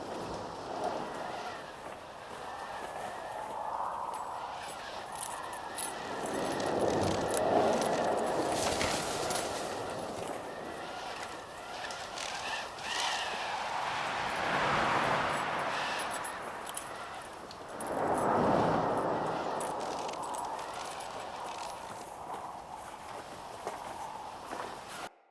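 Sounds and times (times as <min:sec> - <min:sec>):
tent interior ambience: 0:00.0 - 0:25.1.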